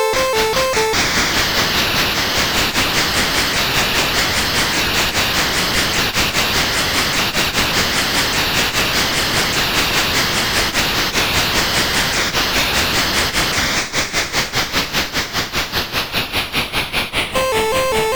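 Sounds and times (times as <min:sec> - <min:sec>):
train: 0:00.2 - 0:17.9.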